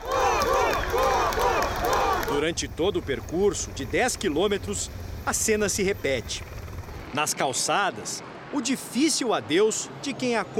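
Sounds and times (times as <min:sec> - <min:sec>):
crowd applauding and cheering: 0:00.0 - 0:02.4
speech: 0:02.4 - 0:10.5.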